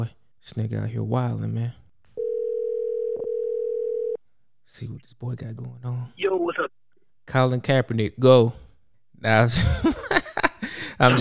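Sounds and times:
speech: 0.0 - 1.8, 4.7 - 8.6, 9.2 - 11.1
phone call ringing tone: 2.2 - 4.2
laughter: 9.5 - 11.1.

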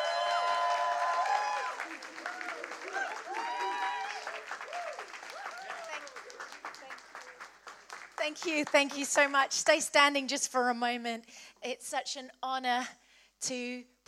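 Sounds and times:
standing church congregation at Equippers Essex applauding: 0.0 - 9.3
speech: 8.3 - 14.0.

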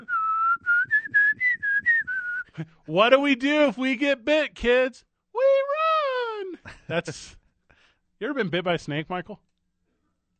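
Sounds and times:
person whistling a flute-like tune: 0.0 - 2.6
speech: 2.6 - 5.1, 6.9 - 7.4, 8.2 - 9.4.

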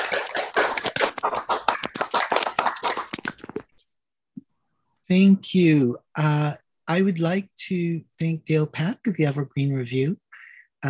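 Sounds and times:
audience applause: 0.0 - 3.6
speech: 5.1 - 10.2.

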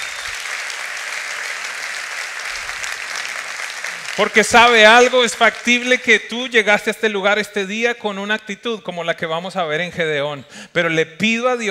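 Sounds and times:
audience applause: 0.0 - 5.9
speech: 4.2 - 11.6.

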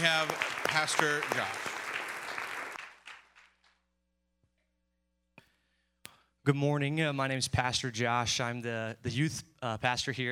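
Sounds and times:
speech: 0.0 - 1.7, 6.4 - 10.3
applause: 0.0 - 3.8.

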